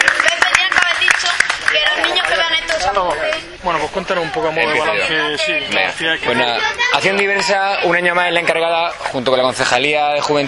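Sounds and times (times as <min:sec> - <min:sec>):
audience applause for a parent: 0:00.0 - 0:03.4
murmur of voices in the crowd: 0:00.0 - 0:10.4
speech: 0:03.0 - 0:10.4.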